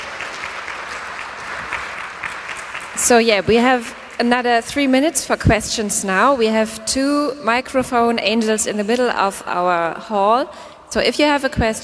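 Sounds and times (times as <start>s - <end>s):
conference audience clapping for the speaker: 0.0s - 4.2s
speech: 3.0s - 11.8s.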